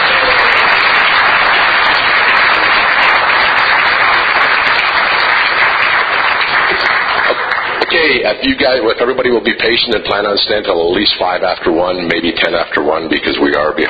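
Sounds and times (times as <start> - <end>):
audience applause: 0.0 - 8.4
speech: 8.1 - 13.8.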